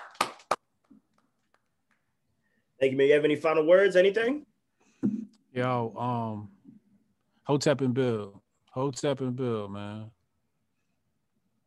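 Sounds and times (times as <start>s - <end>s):
audience clapping: 0.0s - 1.6s
speech: 2.8s - 6.6s, 7.5s - 10.2s.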